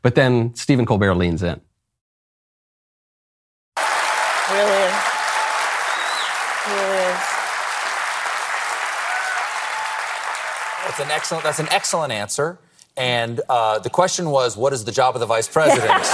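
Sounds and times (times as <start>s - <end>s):
speech: 0.0s - 1.7s, 4.5s - 5.1s, 11.0s - 16.1s
studio audience applause: 3.8s - 12.1s
laughter: 15.6s - 16.1s.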